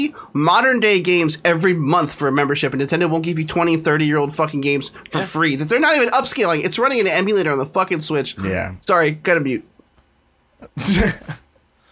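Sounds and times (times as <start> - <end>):
speech: 0.0 - 9.7, 10.7 - 11.4
person coughing: 10.6 - 11.4.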